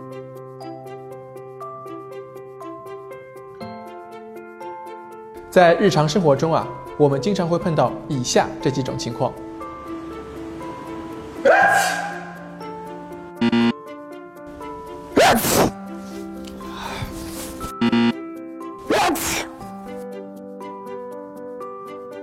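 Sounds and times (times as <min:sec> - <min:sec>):
speech: 0:05.5 - 0:09.5
person sneezing: 0:11.5 - 0:12.3, 0:15.2 - 0:15.8, 0:16.6 - 0:17.6, 0:18.8 - 0:19.6.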